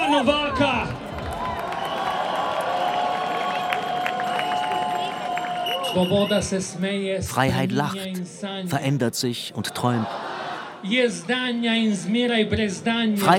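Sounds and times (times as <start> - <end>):
speech: 0.1 - 0.9, 6.0 - 13.3
audience applause: 0.3 - 6.4.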